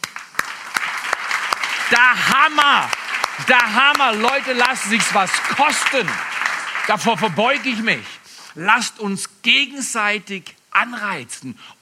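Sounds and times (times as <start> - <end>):
audience applause: 0.0 - 8.4
speech: 1.9 - 6.3, 6.9 - 11.8.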